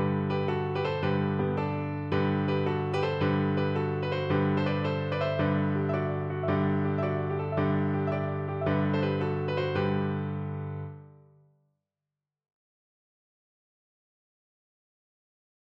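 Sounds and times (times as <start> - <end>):
piano: 0.0 - 11.4.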